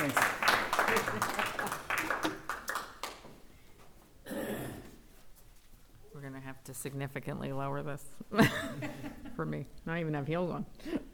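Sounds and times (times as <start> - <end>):
audience applause: 0.0 - 3.2
speech: 6.7 - 11.0
laughter: 8.4 - 9.4.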